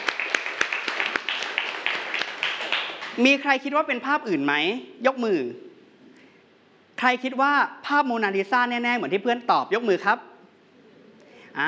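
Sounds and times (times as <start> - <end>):
students clapping in classroom: 0.0 - 3.2
speech: 3.2 - 5.7, 7.0 - 10.3.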